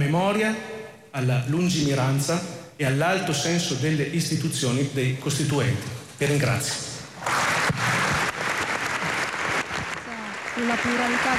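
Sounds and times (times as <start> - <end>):
speech: 0.1 - 7.4, 10.6 - 11.3
applause in a parliament chamber: 7.2 - 11.3.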